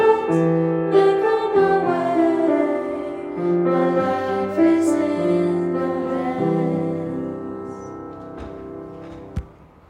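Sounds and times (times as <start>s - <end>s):
soprano singing gospel: 0.0s - 8.3s.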